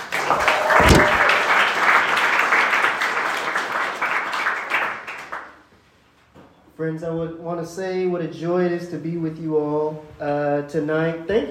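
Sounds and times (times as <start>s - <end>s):
audience applause for a speaker at an evening gathering: 0.0s - 5.4s
heavy thump: 0.6s - 1.3s
speech: 6.8s - 11.4s.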